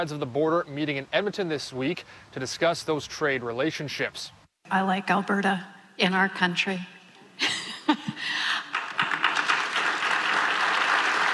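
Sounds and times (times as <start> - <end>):
speech: 0.0 - 8.5
audience applause: 8.4 - 11.3.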